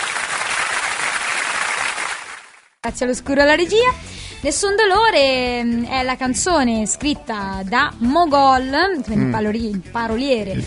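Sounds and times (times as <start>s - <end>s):
audience applause for a singer on an Italian music show: 0.0s - 2.7s
speech: 2.8s - 10.6s.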